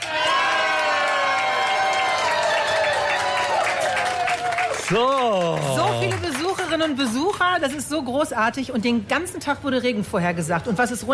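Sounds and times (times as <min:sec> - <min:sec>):
live festival audience cheering: 0:00.0 - 0:06.8
speech: 0:04.9 - 0:11.1.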